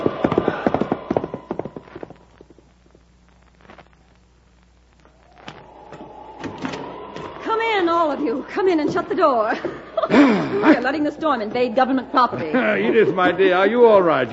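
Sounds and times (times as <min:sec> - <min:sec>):
horse hooves clip-clopping: 0:00.0 - 0:02.6
laughter: 0:07.8 - 0:13.9
speech: 0:08.4 - 0:14.3.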